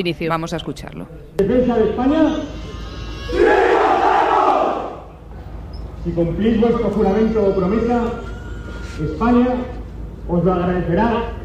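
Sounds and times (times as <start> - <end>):
speech: 0.0 - 3.6, 6.0 - 8.3, 9.0 - 11.4
crowd shouting at oath ceremony: 3.2 - 5.1.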